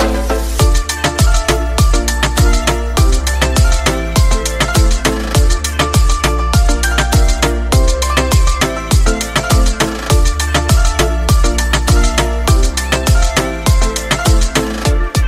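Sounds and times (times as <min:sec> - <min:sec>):
Bollywood sweet ringtone melody: 0:00.1 - 0:15.2.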